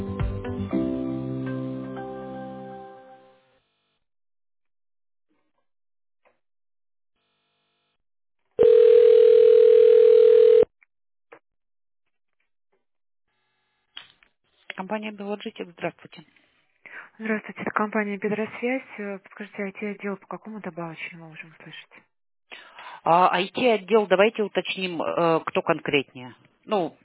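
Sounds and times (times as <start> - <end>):
telephone ringing tone while on hold: 8.6 - 10.7
speech: 14.9 - 16.4, 17.2 - 22.1, 23.0 - 27.0.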